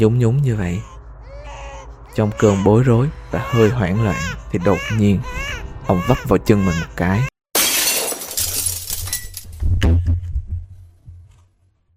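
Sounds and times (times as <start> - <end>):
speech: 0.0 - 0.9, 2.2 - 7.3
glass shattering: 7.6 - 9.6.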